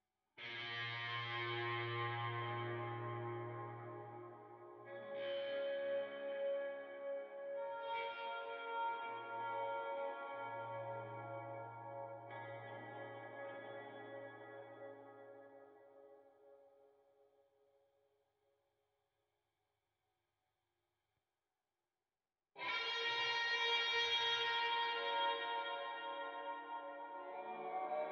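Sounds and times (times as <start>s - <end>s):
guitar: 0.4s - 17.2s, 22.6s - 28.0s.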